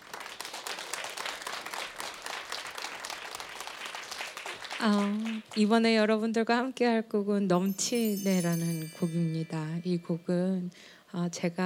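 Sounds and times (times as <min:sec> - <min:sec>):
audience applause and cheering: 0:00.0 - 0:05.4
speech: 0:04.8 - 0:11.6.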